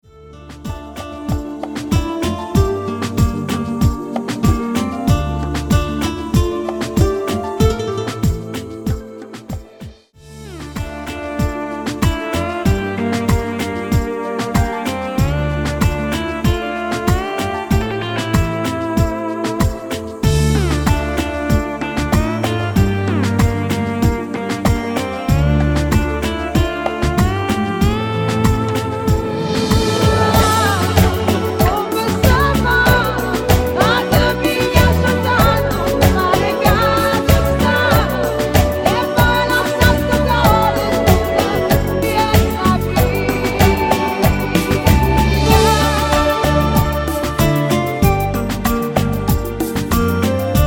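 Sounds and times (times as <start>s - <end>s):
person singing: 0.2s - 50.5s.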